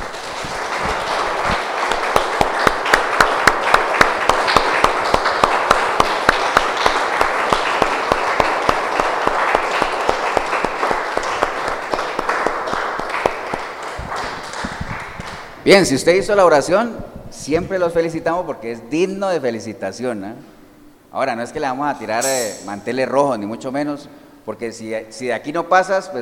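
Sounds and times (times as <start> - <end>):
audience applause: 0.0 - 15.6
speech: 15.7 - 20.5, 21.1 - 26.2.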